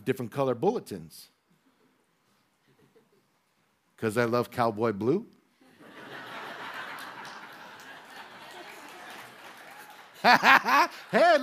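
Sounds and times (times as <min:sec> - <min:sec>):
speech: 0:00.0 - 0:01.4, 0:04.0 - 0:05.4, 0:10.2 - 0:11.4
audience laughing: 0:05.7 - 0:11.4
audience clapping: 0:06.4 - 0:11.4.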